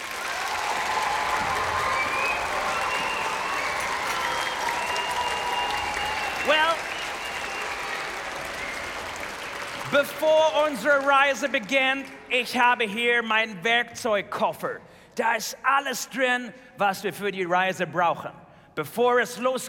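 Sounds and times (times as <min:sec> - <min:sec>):
audience applause: 0:00.0 - 0:12.3
speech: 0:10.0 - 0:19.6.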